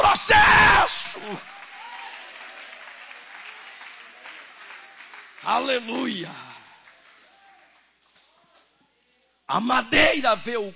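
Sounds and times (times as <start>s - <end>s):
speech: 0.3s - 1.6s, 5.5s - 6.5s, 9.5s - 10.7s
audience applauding: 1.2s - 8.7s.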